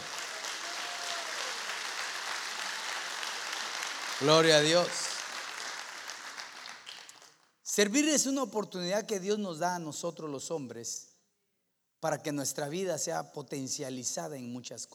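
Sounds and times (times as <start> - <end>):
audience clapping: 0.0 - 7.4
speech: 4.2 - 5.0, 7.8 - 11.1, 12.0 - 14.9.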